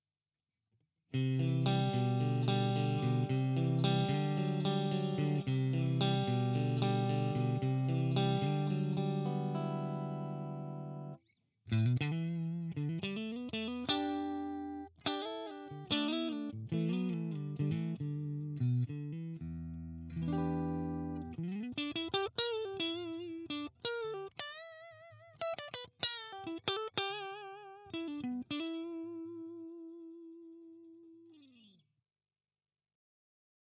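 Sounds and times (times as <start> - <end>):
Fender Am Pro guitar neck mid clean tone: 1.1 - 31.8.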